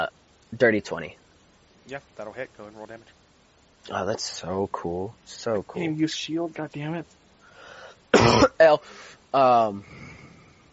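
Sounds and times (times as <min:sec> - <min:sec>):
speech: 0:00.0 - 0:01.2, 0:01.9 - 0:03.2, 0:03.8 - 0:07.2, 0:08.2 - 0:10.0
person coughing with a coconut piece stuck in throat: 0:08.1 - 0:08.6.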